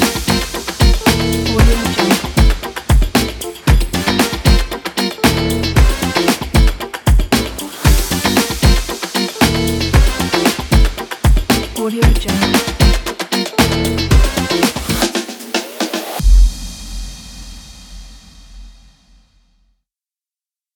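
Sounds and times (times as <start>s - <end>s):
radio funk groove: 0.0s - 15.4s.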